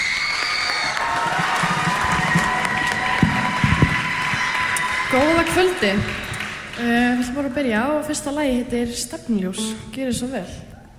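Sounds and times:
audience cheers and whoops: 0.0 - 6.6
audience applauding a band at a live concert: 0.0 - 7.4
speech: 5.5 - 6.2, 6.8 - 10.7.

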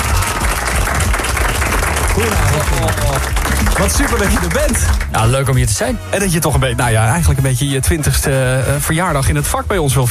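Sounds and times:
crowd applause: 0.0 - 5.4
speech: 2.2 - 10.0.

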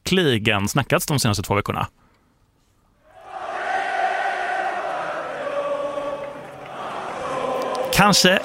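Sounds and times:
speech: 0.1 - 2.0, 8.0 - 8.4
tennis crowd singing national anthem: 3.2 - 8.4.

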